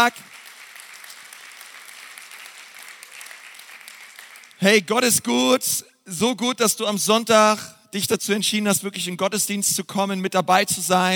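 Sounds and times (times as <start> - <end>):
speech: 0.0 - 0.3, 4.6 - 11.1
audience applause: 0.0 - 4.6.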